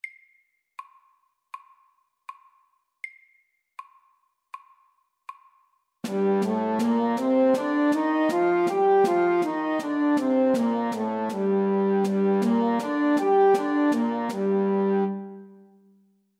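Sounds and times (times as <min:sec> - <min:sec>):
music in G minor: 0:06.0 - 0:15.9.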